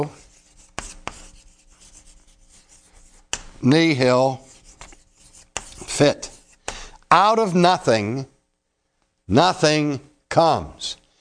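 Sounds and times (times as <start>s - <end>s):
speech: 0.0s - 0.2s, 3.6s - 4.4s, 6.0s - 6.3s, 7.1s - 8.3s, 9.3s - 11.0s
writing scratching strokes on a surface: 0.0s - 6.7s
writing taps on a surface: 0.6s - 2.0s, 3.0s - 3.6s, 4.6s - 5.9s.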